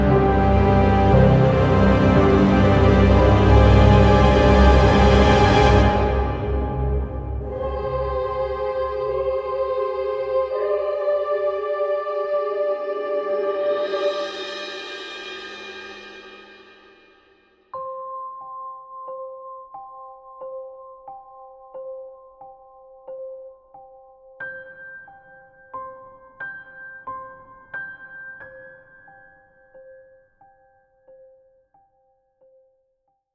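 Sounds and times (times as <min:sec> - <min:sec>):
orchestral horror ambience requiem: 0:00.0 - 0:16.5.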